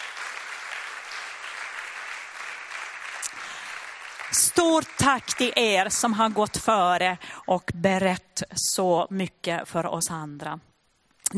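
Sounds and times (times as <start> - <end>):
resounding audience applause: 0.0 - 7.0
speech: 4.3 - 10.7.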